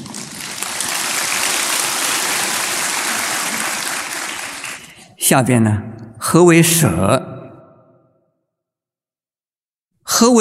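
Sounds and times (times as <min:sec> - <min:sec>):
crowd applause: 0:00.0 - 0:05.2
speech: 0:05.3 - 0:07.4, 0:10.2 - 0:10.3.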